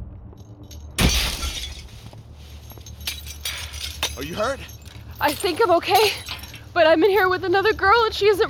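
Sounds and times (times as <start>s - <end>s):
plexiglass panel crashing and rattling as it gives way: 1.0s - 2.1s, 2.9s - 6.7s
speech: 4.2s - 8.4s.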